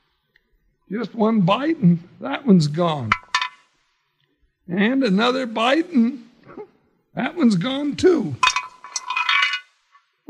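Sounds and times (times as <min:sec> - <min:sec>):
speech: 0:00.9 - 0:03.2, 0:04.7 - 0:06.2, 0:07.2 - 0:08.4
hard bone rattling in a metal frying pan: 0:08.4 - 0:09.9.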